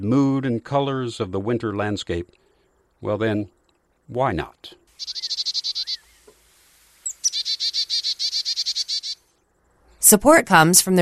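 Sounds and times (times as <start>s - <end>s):
speech: 0.0s - 2.4s, 3.0s - 5.2s, 10.1s - 11.0s
chickadee harsh buzzy calls: 4.9s - 9.4s
chickadee thin whistles: 5.0s - 6.4s, 7.0s - 9.2s.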